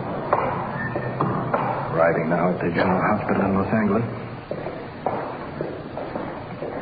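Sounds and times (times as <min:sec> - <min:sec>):
footsteps climbing stairs in a general hospital in Los Angeles: 0:00.0 - 0:06.7
speech: 0:02.0 - 0:04.2.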